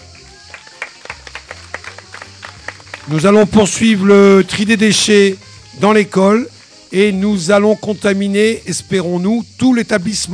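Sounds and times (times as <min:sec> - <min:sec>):
audience at a school event applauding a pupil: 0:00.0 - 0:05.7
speech: 0:03.1 - 0:10.3.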